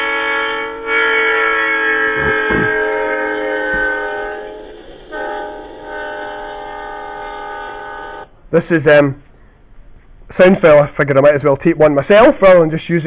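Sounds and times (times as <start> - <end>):
passing train horn demonstrating the Doppler effect: 0.0 - 8.3
low rail rumble: 0.0 - 8.5
speech: 8.5 - 9.2, 10.4 - 13.0.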